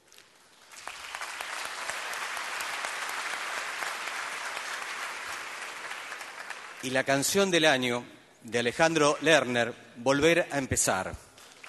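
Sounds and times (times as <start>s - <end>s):
audience applause: 0.5s - 6.8s
speech: 6.8s - 11.2s.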